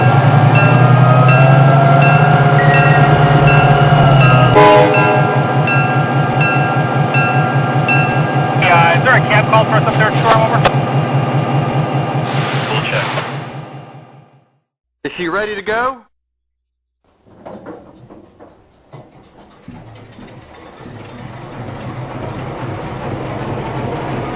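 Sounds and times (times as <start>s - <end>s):
EMD GP-7 locomotive: 0.0s - 14.4s, 17.1s - 24.3s.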